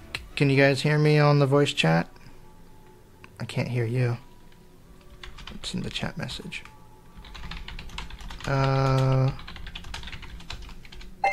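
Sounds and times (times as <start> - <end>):
speech: 0.4 - 2.2, 3.4 - 4.3, 5.6 - 6.7, 8.4 - 9.5
typing a chat message on a computer keyboard: 4.5 - 11.1.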